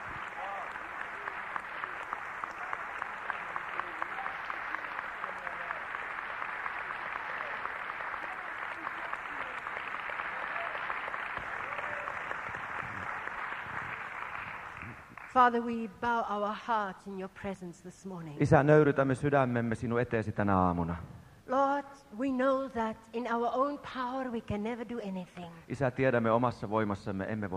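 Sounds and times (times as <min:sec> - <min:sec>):
audience clapping: 0:00.0 - 0:15.5
speech: 0:15.4 - 0:27.5.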